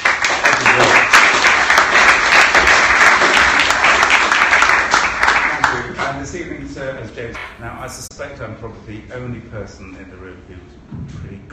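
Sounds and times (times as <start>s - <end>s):
audience applause welcoming a speaker to the stage at an evening event: 0.0s - 6.0s
speech: 7.2s - 11.5s.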